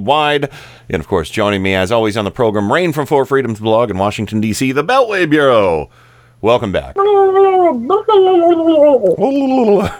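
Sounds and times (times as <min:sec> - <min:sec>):
speech: 0:00.0 - 0:09.9
person imitating turkey gobble: 0:07.0 - 0:09.9.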